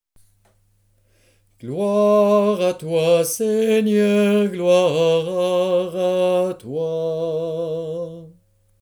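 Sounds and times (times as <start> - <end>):
person praying a litany: 1.6 - 8.4.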